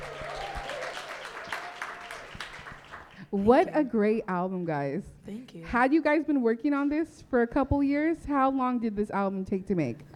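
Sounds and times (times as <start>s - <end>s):
audience clapping: 0.0s - 3.4s
speech: 3.3s - 10.1s.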